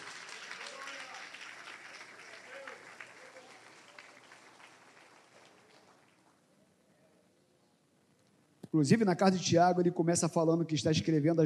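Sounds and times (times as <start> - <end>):
audience applauding: 0.0 - 6.4
speech: 8.7 - 11.4.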